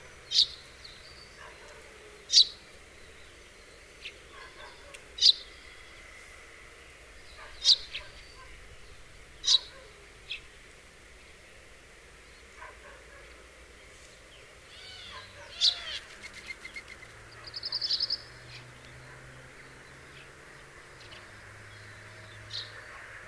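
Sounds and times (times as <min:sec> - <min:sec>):
Passer domesticus house sparrow chirping: 0:00.0 - 0:06.2, 0:07.1 - 0:10.6, 0:14.3 - 0:23.0.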